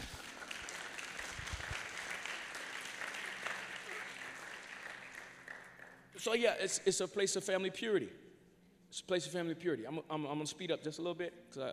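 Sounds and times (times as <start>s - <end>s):
audience clapping: 0.0s - 6.3s
speech: 6.2s - 8.2s, 9.0s - 11.7s.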